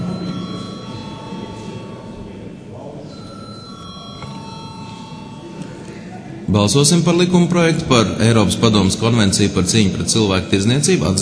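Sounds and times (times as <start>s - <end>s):
parliament chamber bell ringing before a vote: 0.0s - 2.5s, 3.1s - 6.1s
speech: 6.5s - 11.2s.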